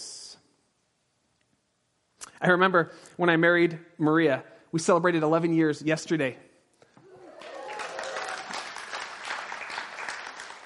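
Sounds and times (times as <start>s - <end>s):
speech: 2.4s - 6.5s
audience applause: 7.0s - 10.6s.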